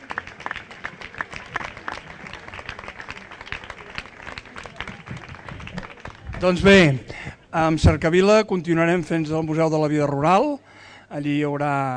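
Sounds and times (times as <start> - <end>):
audience applause: 0.0 - 7.1
faint crowd murmur: 0.0 - 7.5
speech: 6.4 - 11.9.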